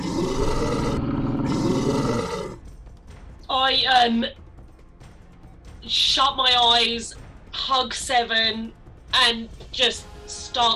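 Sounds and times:
monster's horrific growl and gurgling sound: 0.0 - 2.6
speech: 3.7 - 4.4, 5.9 - 10.7.

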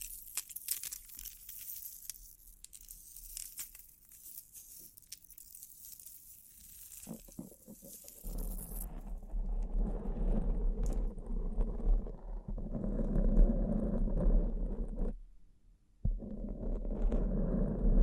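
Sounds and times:
duller rubbing and rustling: 0.0 - 10.7
bling triggers soft bright crinkly scratching: 0.0 - 15.2, 16.2 - 18.0.

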